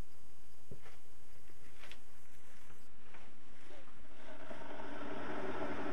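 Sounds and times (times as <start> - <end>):
electric kettle heating water: 3.1 - 5.9.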